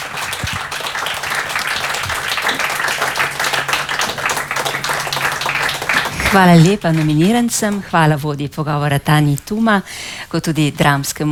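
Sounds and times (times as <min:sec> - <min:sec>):
large audience applause: 0:00.0 - 0:07.8
speech: 0:06.3 - 0:11.3.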